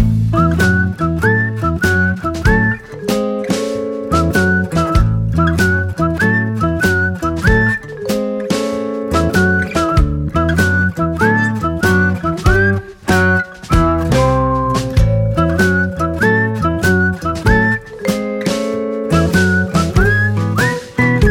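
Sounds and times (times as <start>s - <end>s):
whistled melody: 0.1s - 21.2s.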